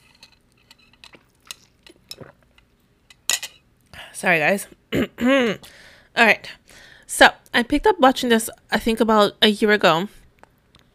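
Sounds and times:
person drinking water from a glass: 0:01.1 - 0:02.6
speech: 0:04.2 - 0:10.2.

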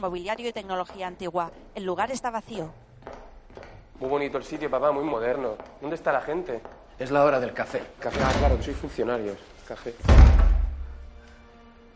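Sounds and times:
speech: 0:00.0 - 0:03.2, 0:04.0 - 0:10.4
heavy wooden thud of a door being barred shut: 0:10.0 - 0:11.0.

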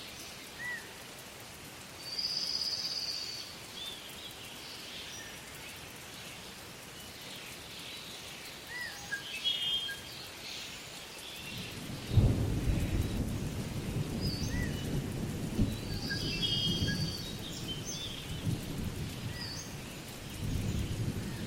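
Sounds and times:
bright insect or bird calls: 0:00.0 - 0:21.4
steady soft hiss: 0:00.0 - 0:21.4
thunder in a tropical rainforest: 0:11.6 - 0:21.4.

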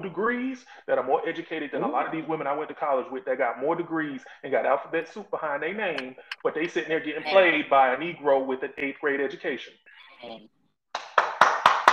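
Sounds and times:
speech: 0:00.0 - 0:11.1
person clapping hands: 0:10.9 - 0:11.9.

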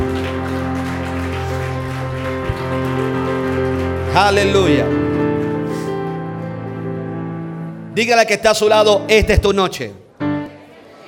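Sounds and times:
audience applauding loudly: 0:00.0 - 0:06.2
speech: 0:04.2 - 0:05.0, 0:08.0 - 0:10.0.

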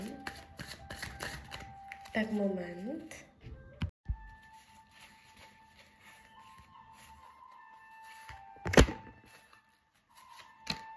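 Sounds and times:
playing cards shuffling: 0:00.0 - 0:03.2, 0:04.5 - 0:10.9
speech: 0:02.2 - 0:03.2.

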